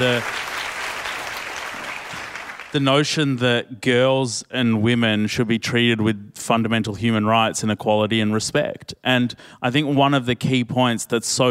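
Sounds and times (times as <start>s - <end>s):
speech: 0.0s - 0.4s, 2.7s - 11.5s
applause: 0.0s - 2.8s.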